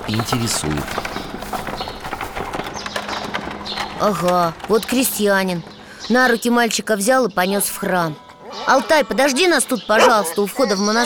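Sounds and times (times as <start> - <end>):
horse-drawn cart hooves clip-clopping at a monastery: 0.0 - 6.6
speech: 0.1 - 1.3, 4.0 - 11.0.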